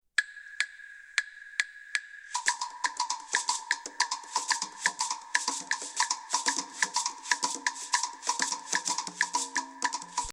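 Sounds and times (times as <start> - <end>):
rumba music: 2.5 - 10.3.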